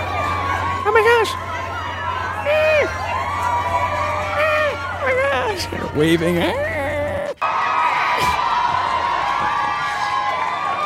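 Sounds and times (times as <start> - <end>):
crowd cheering: 0.0 - 6.7, 7.4 - 10.8
speech: 1.2 - 1.4, 5.6 - 6.7.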